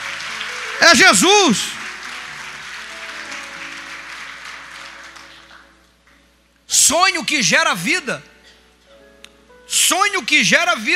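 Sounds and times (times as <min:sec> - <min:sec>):
sustained applause from a large crowd: 0:00.0 - 0:05.7
speech: 0:00.8 - 0:01.8, 0:06.9 - 0:08.3, 0:09.8 - 0:10.9.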